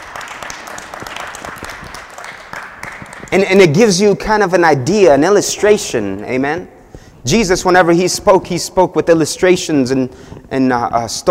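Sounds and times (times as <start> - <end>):
single person clapping: 0.0 - 3.3
speech: 3.3 - 11.2.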